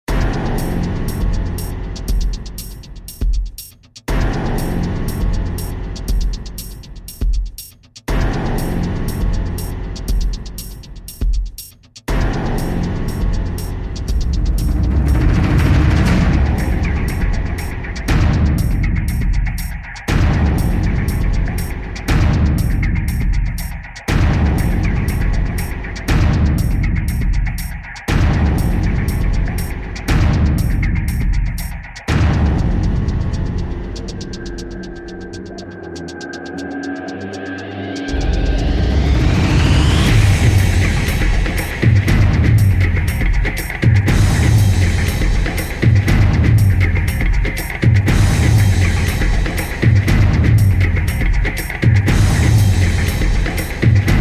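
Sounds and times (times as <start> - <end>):
percussion: 0.0 - 54.1.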